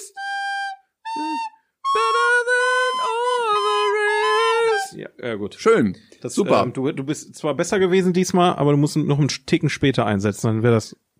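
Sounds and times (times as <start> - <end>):
flute or whistle being blown: 0.0 - 5.0
speech: 5.2 - 11.1.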